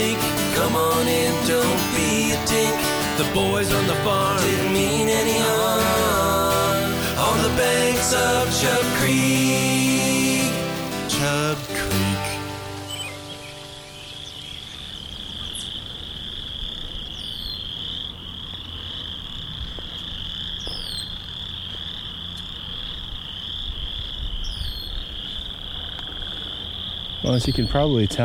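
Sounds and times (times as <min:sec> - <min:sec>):
frogs croaking in a marsh: 0:00.0 - 0:28.2
speech: 0:00.7 - 0:06.1, 0:27.3 - 0:28.2.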